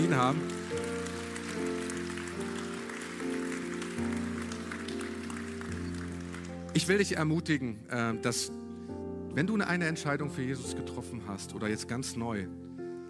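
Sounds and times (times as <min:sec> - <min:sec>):
audience applause: 0:00.0 - 0:07.0
speech: 0:00.1 - 0:00.6, 0:06.8 - 0:08.7, 0:09.3 - 0:12.6.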